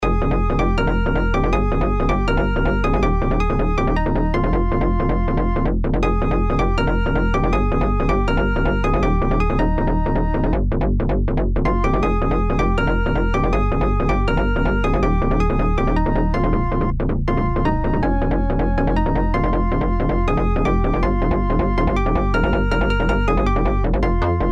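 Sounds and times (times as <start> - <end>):
bass: 0.0 - 24.5.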